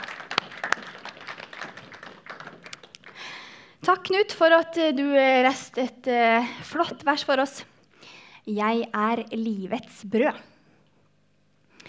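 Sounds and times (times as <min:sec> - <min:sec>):
audience applause: 0:00.0 - 0:03.4
speech: 0:03.9 - 0:07.7, 0:08.5 - 0:10.5.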